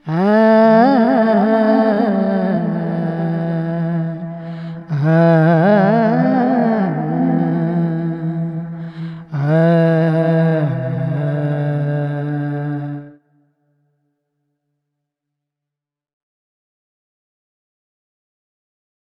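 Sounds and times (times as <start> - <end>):
man singing world pop: 0.0 - 13.0.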